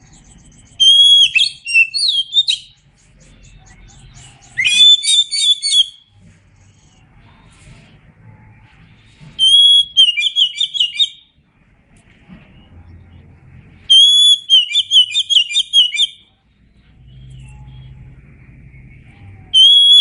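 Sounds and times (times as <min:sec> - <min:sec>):
Oriental magpie-robin song with sharp whistles and chattering notes: 0:00.0 - 0:07.1, 0:08.5 - 0:11.3, 0:13.8 - 0:19.9.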